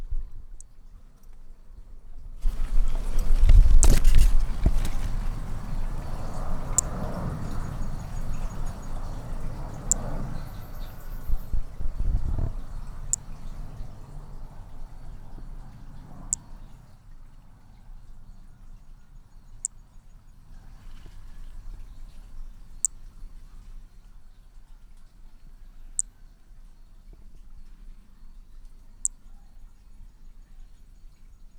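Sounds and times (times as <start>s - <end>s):
Hermogenes' flea-toad chirping calls: 2.4s - 16.8s.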